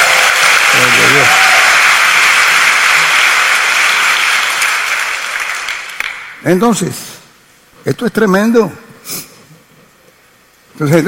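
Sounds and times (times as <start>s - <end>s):
audience applause: 0.0s - 6.3s
speech: 6.4s - 7.1s, 7.8s - 9.2s, 10.8s - 11.0s.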